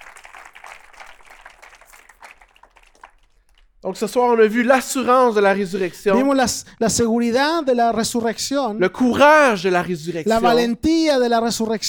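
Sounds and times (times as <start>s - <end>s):
audience applauding: 0.0s - 3.8s
speech: 3.8s - 11.8s.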